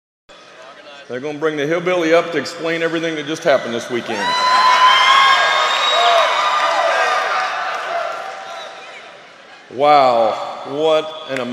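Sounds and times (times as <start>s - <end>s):
speech: 1.1s - 4.7s, 9.7s - 11.5s
audience cheering and applauding: 4.1s - 9.4s.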